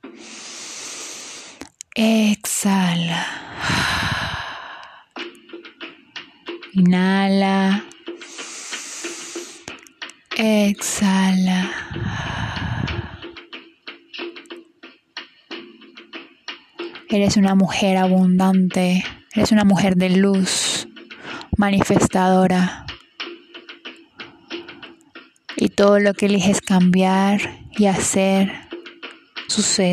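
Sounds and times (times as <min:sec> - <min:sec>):
deep breaths during a guided breathing meditation: 0:00.0 - 0:01.7, 0:03.2 - 0:06.7, 0:08.1 - 0:09.8, 0:11.7 - 0:17.0, 0:21.1 - 0:21.5, 0:23.2 - 0:25.3
speech: 0:02.0 - 0:04.1, 0:06.8 - 0:07.9, 0:10.4 - 0:12.3, 0:17.1 - 0:20.6, 0:21.6 - 0:22.8, 0:25.8 - 0:28.6, 0:29.5 - 0:29.9.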